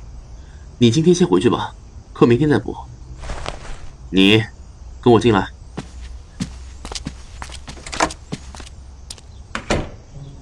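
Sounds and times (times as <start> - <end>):
speech: 0.8 - 2.9, 4.1 - 5.6
footsteps and knocks: 5.8 - 9.3.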